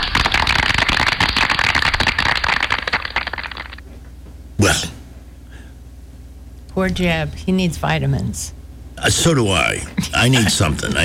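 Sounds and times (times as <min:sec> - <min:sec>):
audience clapping: 0:00.0 - 0:03.8
speech: 0:06.8 - 0:11.0.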